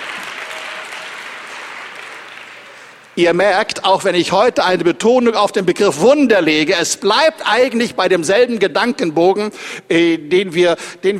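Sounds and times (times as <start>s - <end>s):
church congregation clapping during a sermon: 0.0s - 3.4s
speech: 3.2s - 11.1s.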